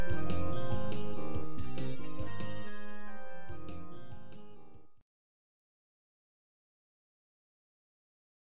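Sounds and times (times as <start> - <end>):
instrumental music: 0.0 - 5.0.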